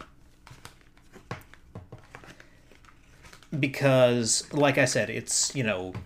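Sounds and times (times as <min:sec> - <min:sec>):
giant cowboy-themed Deadlands Oversized Action deck playing cards being handled: 0:00.0 - 0:04.7
speech: 0:03.5 - 0:06.0.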